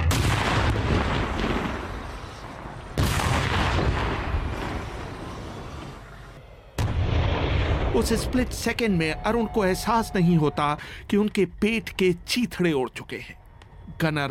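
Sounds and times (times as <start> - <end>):
tank shell explosion: 0.0 - 6.0, 6.8 - 8.8
whistling tank shell: 8.0 - 11.5
speech: 8.0 - 13.4, 14.0 - 14.3.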